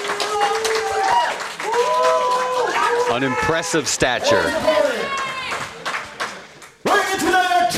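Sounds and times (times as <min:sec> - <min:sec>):
crowd cheering and clapping: 0:00.0 - 0:07.6
long rising shouts: 0:00.2 - 0:05.6
speech: 0:03.2 - 0:05.0.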